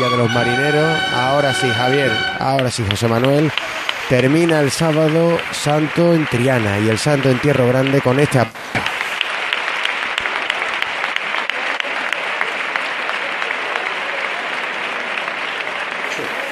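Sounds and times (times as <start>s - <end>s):
sustained applause from a large crowd: 0.0s - 16.5s
speech: 0.1s - 8.9s.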